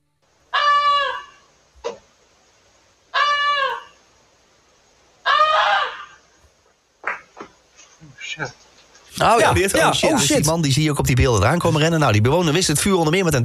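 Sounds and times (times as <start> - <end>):
goose honking in alarm: 0.5 - 1.4, 3.1 - 4.0, 5.2 - 6.2
speech: 8.3 - 8.6, 9.2 - 13.4.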